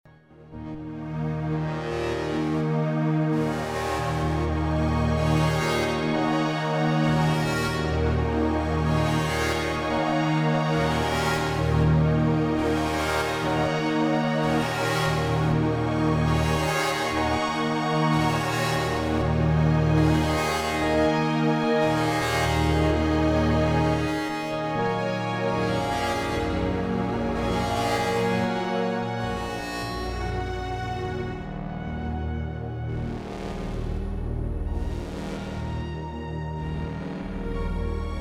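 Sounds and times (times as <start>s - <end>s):
Yamaha TG33 synthesizer: 0.0s - 38.2s.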